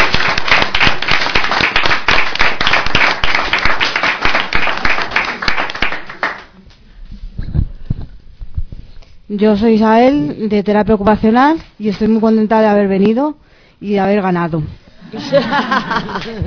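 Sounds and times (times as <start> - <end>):
group applauding: 0.0 - 6.7, 15.8 - 16.4
speech: 9.4 - 16.4
laughter: 15.0 - 16.4.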